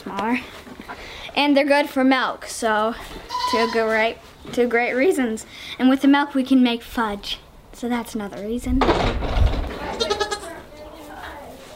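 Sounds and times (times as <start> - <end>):
speech: 0.0 - 0.7, 1.4 - 9.4
goats bleating: 9.9 - 10.6.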